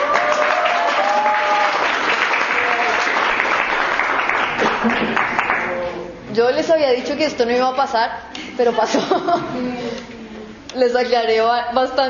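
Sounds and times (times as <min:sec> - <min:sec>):
audience applause: 0:00.0 - 0:05.8
speech: 0:06.4 - 0:10.0, 0:10.8 - 0:12.0
laughter: 0:08.7 - 0:10.0.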